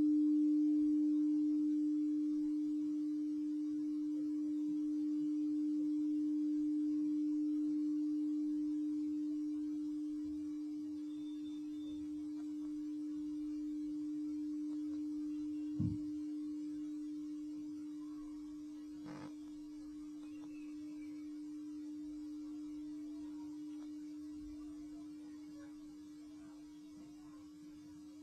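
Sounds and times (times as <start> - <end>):
singing bowl ringing as the rim is circled: 0.0 - 28.2
brief knocks: 15.8 - 16.1.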